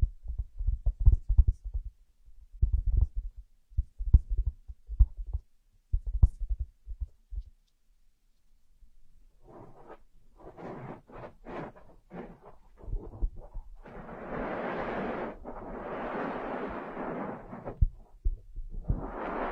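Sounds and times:
ear massage muffled thumps and rubs: 0.0s - 2.0s, 2.6s - 7.6s, 9.4s - 19.5s
rustling strokes and scratchy rubbing: 9.4s - 19.5s.

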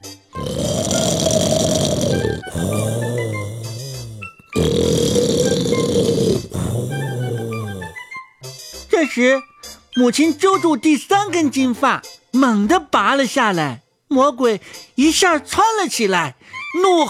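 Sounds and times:
loud snoring: 0.4s - 8.1s
speech: 9.2s - 17.0s.

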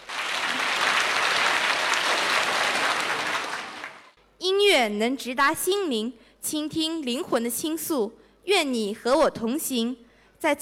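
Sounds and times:
audience applause: 0.0s - 4.2s
speech: 4.8s - 10.6s.

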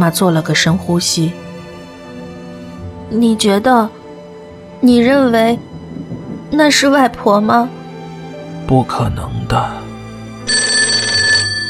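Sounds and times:
speech: 0.0s - 1.5s, 3.1s - 4.0s, 4.8s - 5.7s, 6.5s - 7.8s, 8.7s - 9.8s
telephone bell ringing: 10.5s - 11.6s.

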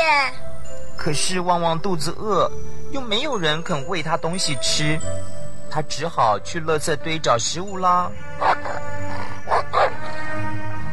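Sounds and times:
speech: 1.0s - 8.4s
dogs barking: 8.4s - 10.2s.

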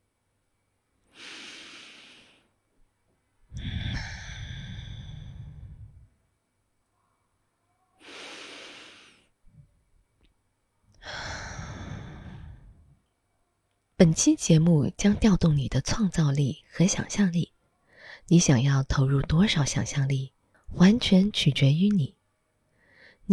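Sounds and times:
slow deep breathing during a guided mindfulness exercise: 1.1s - 2.6s, 3.5s - 6.3s, 8.0s - 9.7s, 11.0s - 13.1s, 22.7s - 23.2s
speech: 14.0s - 17.5s, 18.3s - 22.2s.

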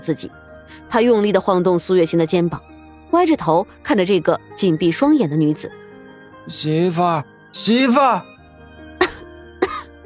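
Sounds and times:
speech: 0.0s - 5.8s, 6.4s - 8.3s
heavy harsh coughs: 9.0s - 9.9s.

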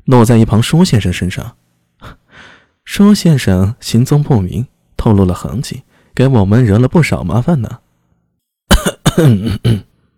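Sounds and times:
speech: 0.1s - 2.2s, 2.9s - 7.8s, 8.8s - 9.9s
man coughing: 8.7s - 10.0s.

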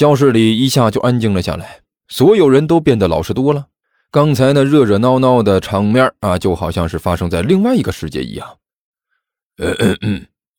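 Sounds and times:
speech: 0.0s - 8.6s, 9.6s - 10.3s
deliberate put-on coughing: 9.6s - 10.4s.

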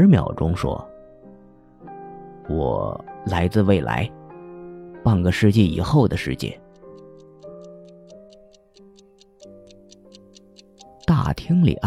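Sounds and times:
speech: 0.0s - 0.9s, 2.5s - 4.2s, 5.0s - 6.6s, 11.1s - 11.8s
clock ticking: 5.6s - 11.4s.

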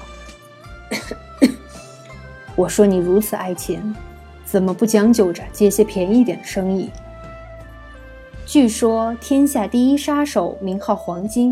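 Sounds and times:
person coughing: 0.9s - 1.9s
speech: 2.6s - 7.0s, 8.5s - 11.5s.

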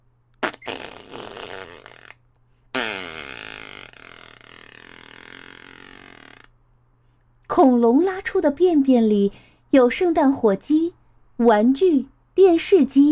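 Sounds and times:
sputtering fart sound effects: 0.4s - 6.5s
speech: 7.6s - 13.1s.

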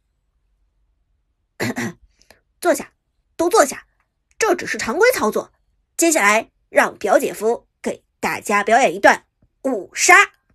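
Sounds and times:
cough: 1.6s - 2.1s
speech: 2.6s - 3.9s, 4.5s - 10.4s.

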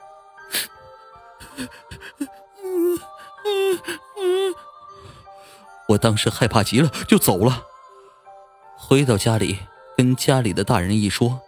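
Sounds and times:
wails of crying echoing in a cave: 1.4s - 5.2s
speech: 1.6s - 2.3s, 5.9s - 7.7s, 8.9s - 11.4s.

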